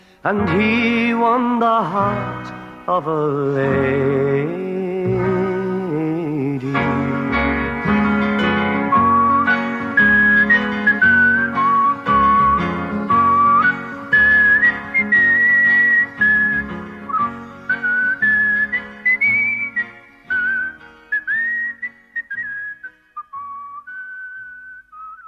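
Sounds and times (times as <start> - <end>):
speech: 0.2 - 4.6
instrumental accompaniment: 0.4 - 23.8
folk tune whistled: 7.0 - 25.2.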